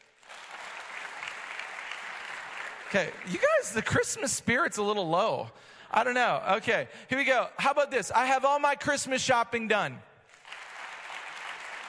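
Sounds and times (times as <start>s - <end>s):
audience clapping in agreement: 0.0s - 4.2s, 10.3s - 11.8s
speech: 2.9s - 10.1s.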